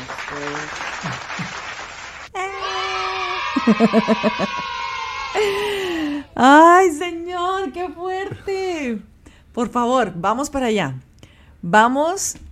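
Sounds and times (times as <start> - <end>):
laughter: 0.0 - 1.8, 2.6 - 6.2
applause sound effect: 0.0 - 2.4
speech: 0.3 - 1.2, 3.7 - 4.7, 6.4 - 12.4.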